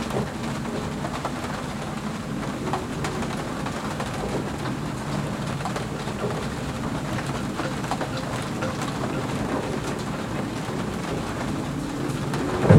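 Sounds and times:
rain on a yacht heard from the cabin: 0.0 - 12.7
gale force wind on a yacht heard from the cabin: 9.0 - 12.7.

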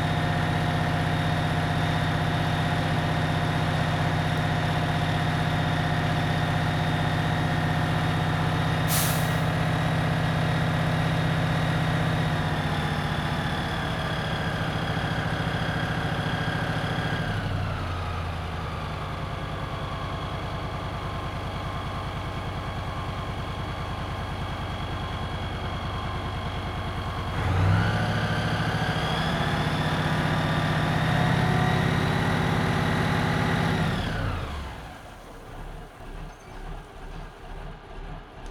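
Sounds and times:
fire engine engaging main: 0.0 - 38.4.

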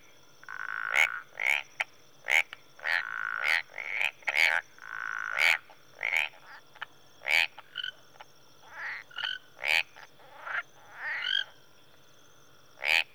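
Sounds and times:
marsh and tree frogs calling in early evening in Rwanda: 0.0 - 11.9, 12.8 - 13.1.

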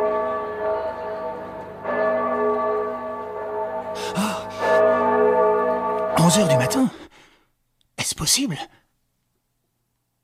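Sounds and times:
church clock bell tolling: 0.0 - 7.1
speech: 6.3 - 7.1, 8.2 - 8.8.

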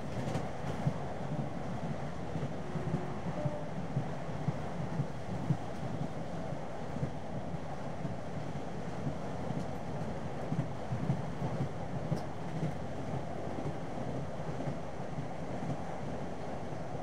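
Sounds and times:
train running and stopping in station, heard from interior: 0.0 - 17.0.

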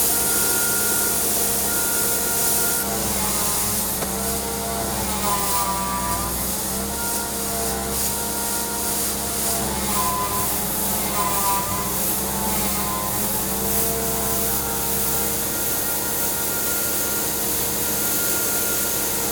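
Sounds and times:
grain blower farm machinery: 0.0 - 19.3.

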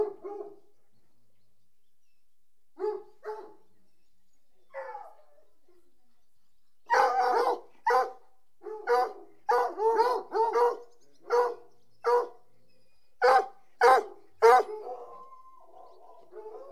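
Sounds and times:
dog barking: 0.0 - 0.6, 2.8 - 3.6, 6.9 - 12.4, 13.2 - 15.2.

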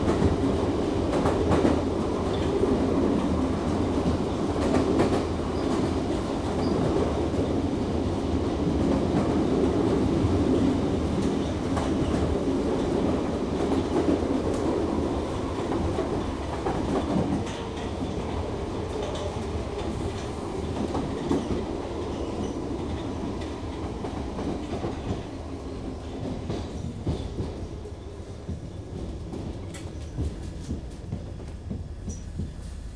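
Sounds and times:
London Underground trains: 0.0 - 32.9.

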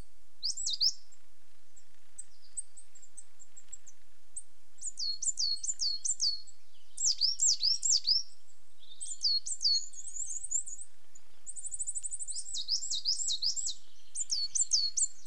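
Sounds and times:
coal tits giving high-pitched calls on a territorial boundary: 0.0 - 1.2, 1.8 - 15.2.

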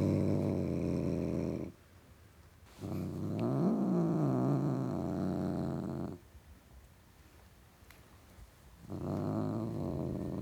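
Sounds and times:
male tom cat growling: 0.0 - 1.7, 2.8 - 6.2, 8.8 - 10.4.

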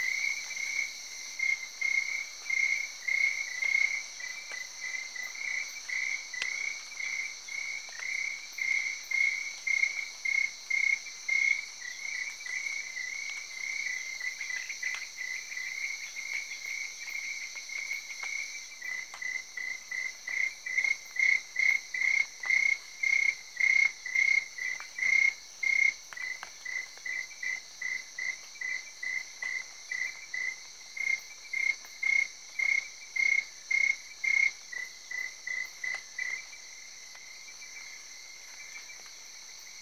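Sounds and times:
crickets chirping: 0.0 - 39.8
rain on big leaves: 0.0 - 39.8.

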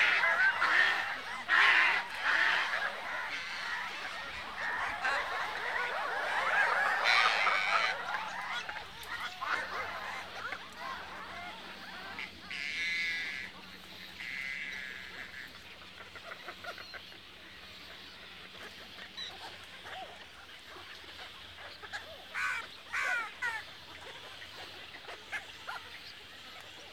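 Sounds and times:
Asian darter and water birds calling: 0.0 - 26.9.

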